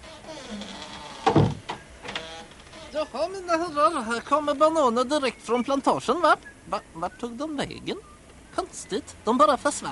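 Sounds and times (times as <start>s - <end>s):
door being opened: 0.0s - 3.3s
speech: 3.0s - 9.9s.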